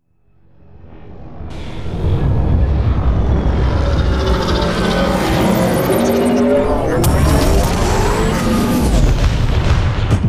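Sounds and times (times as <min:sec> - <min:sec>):
aircraft taking off: 0:01.0 - 0:10.2.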